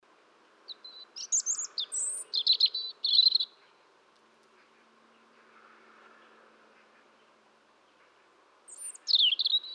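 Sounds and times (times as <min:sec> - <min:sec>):
European robin singing: 0:00.7 - 0:03.6, 0:08.7 - 0:09.7.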